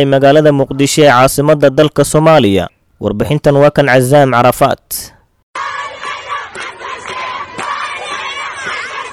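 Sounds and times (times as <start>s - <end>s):
speech: 0.0s - 5.7s
protest crowd shouting and chanting against land grabbing in Mogadishu, Somalia: 5.6s - 9.1s.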